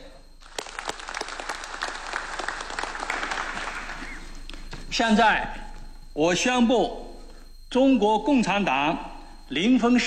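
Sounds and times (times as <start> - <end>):
warm applause: 0.4 - 4.4
speech: 5.0 - 5.6, 6.2 - 7.0, 7.7 - 10.0.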